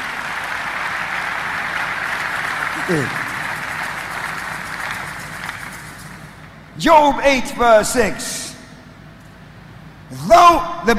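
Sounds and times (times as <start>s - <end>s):
audience clapping: 0.0s - 6.7s
speech: 2.9s - 3.2s, 6.8s - 8.4s, 10.1s - 10.9s.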